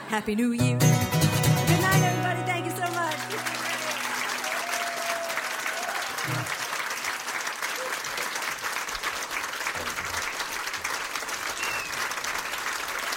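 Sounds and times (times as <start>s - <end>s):
speech: 0.1s - 1.0s
audience applause: 1.8s - 13.1s
faint whistles or cheers: 3.7s - 6.6s, 11.5s - 13.1s.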